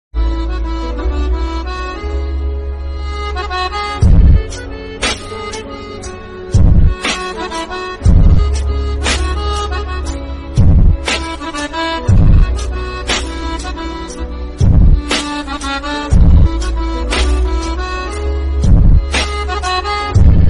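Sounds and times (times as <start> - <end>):
lofi background music: 0.2 - 20.4.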